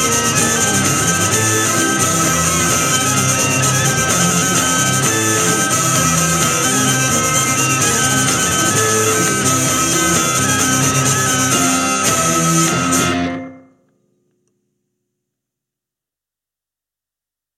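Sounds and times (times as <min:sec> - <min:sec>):
polka music: 0:00.0 - 0:13.6.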